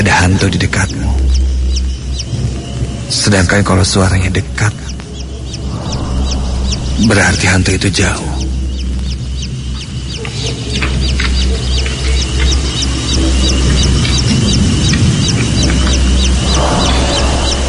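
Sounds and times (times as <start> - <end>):
speech: 0.0 - 1.5, 3.1 - 4.9, 7.0 - 8.4
baby chick peeping: 0.0 - 17.6
constant low hum: 0.0 - 17.6.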